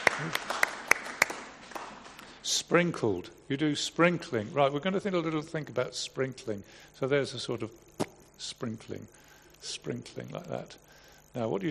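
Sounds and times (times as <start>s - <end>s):
small group clapping: 0.0s - 2.3s
speech: 0.2s - 0.6s, 2.7s - 11.7s.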